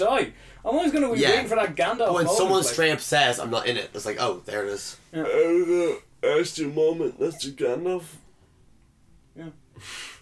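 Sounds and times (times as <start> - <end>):
speech: 0.0 - 8.2, 9.4 - 10.1
person yawning: 5.2 - 6.0.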